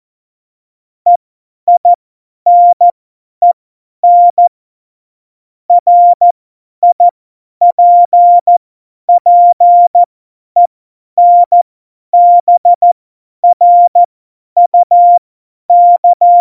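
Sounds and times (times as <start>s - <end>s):
CW Morse code beeps: 2.5s - 4.5s, 5.7s - 11.6s, 12.2s - 16.3s.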